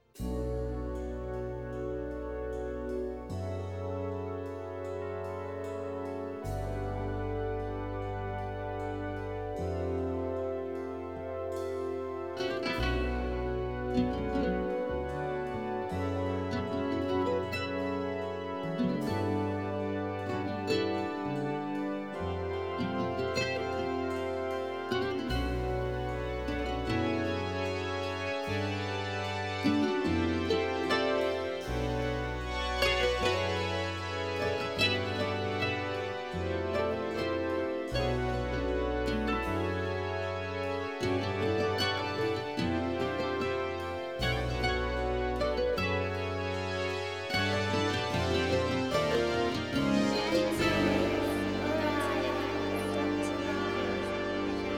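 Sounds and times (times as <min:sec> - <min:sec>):
Chinese instrumental music: 0:00.0 - 0:54.7.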